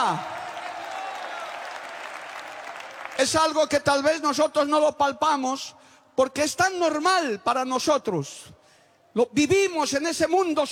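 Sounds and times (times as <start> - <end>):
speech: 0.0 - 0.3, 3.2 - 8.6, 9.2 - 10.7
church congregation in Santa Cruz, Bolivia applauding during a service: 0.0 - 3.9.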